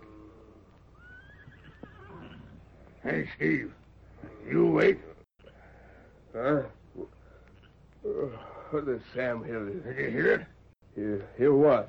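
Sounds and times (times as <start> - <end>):
distant horse whinny: 0.0 - 2.7
hiss: 0.0 - 11.8
speech: 3.0 - 3.8, 4.5 - 5.1, 6.4 - 7.1, 8.1 - 11.8.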